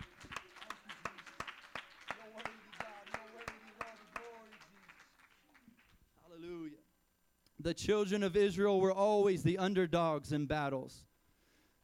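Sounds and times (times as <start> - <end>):
audience clapping hands: 0.0 - 6.0
speech: 7.6 - 11.1.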